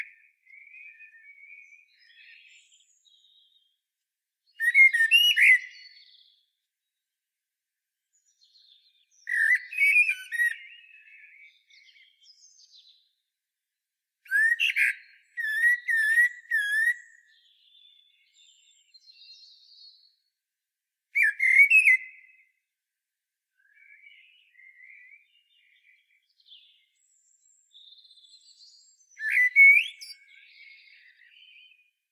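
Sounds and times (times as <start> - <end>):
common blackbird singing: 0.0 - 3.8, 4.5 - 7.1, 8.1 - 13.2, 14.3 - 20.3, 21.2 - 22.6, 23.6 - 32.1.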